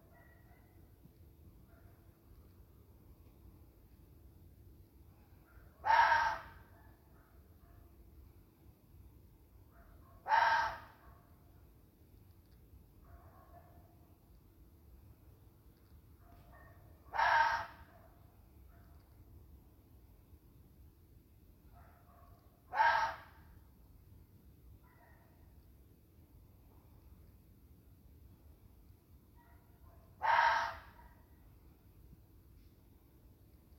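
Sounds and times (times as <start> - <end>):
faint low hum: 0.0 - 33.7
fox screaming: 5.8 - 6.6, 10.2 - 10.9, 17.1 - 17.8, 22.7 - 23.4, 30.2 - 31.0.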